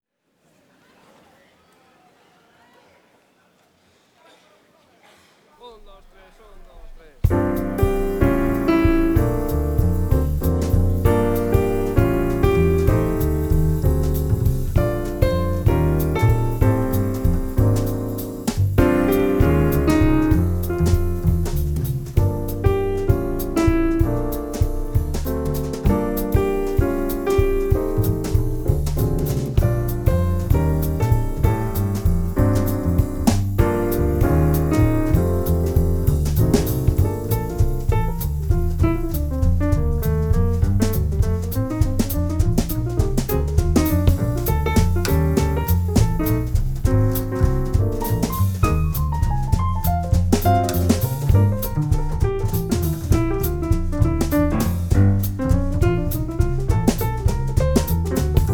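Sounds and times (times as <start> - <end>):
instrumental music: 7.2 - 58.5.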